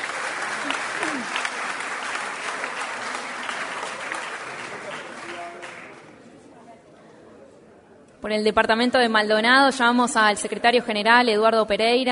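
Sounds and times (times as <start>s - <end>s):
audience applause: 0.0s - 6.1s
speech: 8.2s - 12.1s.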